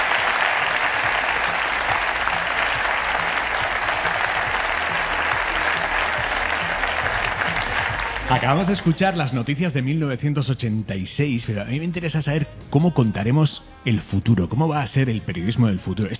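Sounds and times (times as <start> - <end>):
audience applause: 0.0 - 10.2
laughter: 0.0 - 16.1
speech: 8.3 - 16.1.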